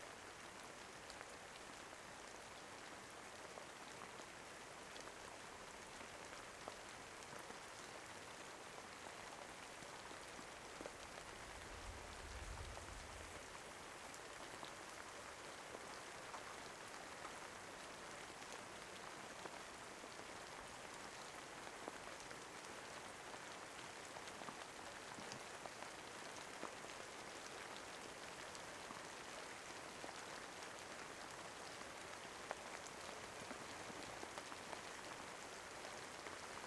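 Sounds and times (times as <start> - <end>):
rain: 0.0 - 36.6.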